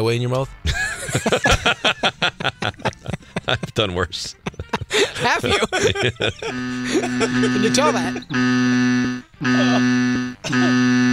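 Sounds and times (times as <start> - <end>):
speech: 0.0 - 2.1, 3.5 - 8.8
laughter: 0.6 - 8.4, 9.5 - 10.8
buzzer: 6.4 - 11.1.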